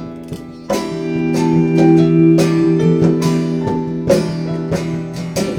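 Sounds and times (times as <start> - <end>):
quartet playing: 0.8 - 5.5.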